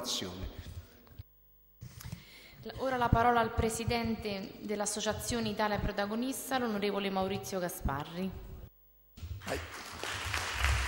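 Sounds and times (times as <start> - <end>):
speech: 0.0 - 0.4, 2.6 - 8.5, 9.4 - 9.8
audience applause at an Italian political association event: 9.5 - 10.8.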